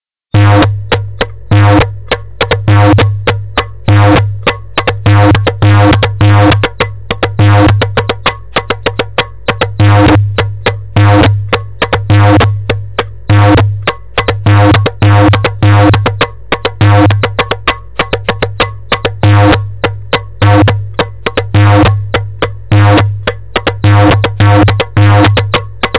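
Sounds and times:
freaky maksoum and masmoudi rhythms: 0.3 - 25.9.

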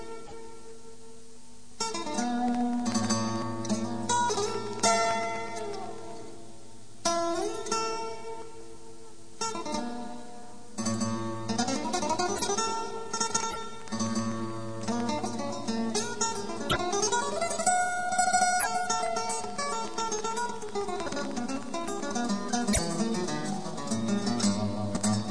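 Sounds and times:
acoustic music: 1.8 - 6.5, 7.1 - 25.2.

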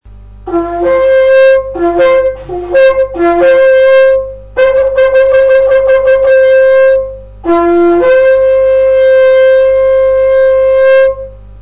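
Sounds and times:
shofar: 0.5 - 11.4.

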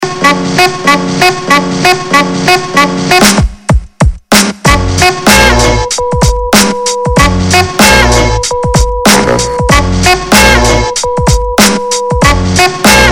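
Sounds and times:
jazz music: 0.0 - 3.7, 4.4 - 13.1.

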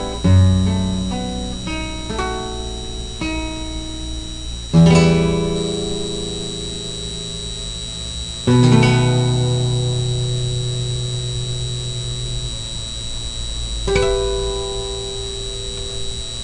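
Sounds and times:
two guitars playing: 0.0 - 7.3, 8.4 - 12.5, 13.9 - 15.3.

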